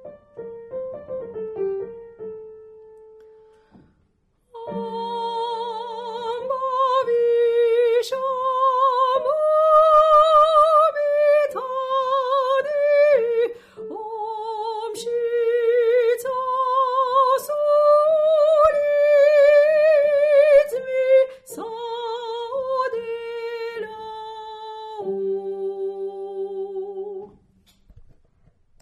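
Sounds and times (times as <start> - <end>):
alto voice singing Georgian songs: 4.5 - 27.4.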